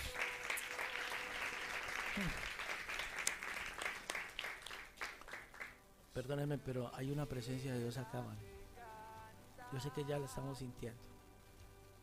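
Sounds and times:
audience applause: 0.0 - 5.8
speech: 2.2 - 2.5, 6.2 - 8.6, 9.7 - 11.1.

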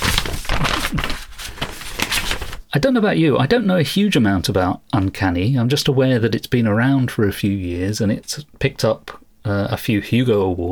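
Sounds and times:
paper notes rustling: 0.0 - 2.7
speech: 2.8 - 10.7.

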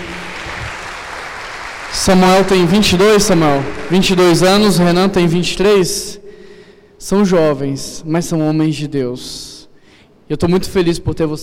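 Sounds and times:
audience applause: 0.0 - 5.1
speech: 1.9 - 6.2, 7.0 - 9.5, 10.3 - 11.4.

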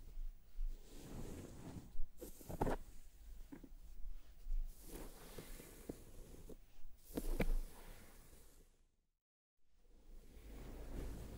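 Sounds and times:
scalp massage rubbing: 0.1 - 8.1.

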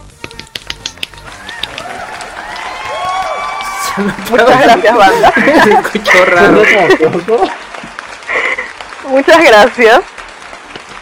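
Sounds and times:
applause: 0.3 - 11.0
laughter: 3.3 - 8.8
speech: 4.0 - 7.6, 9.1 - 10.1.

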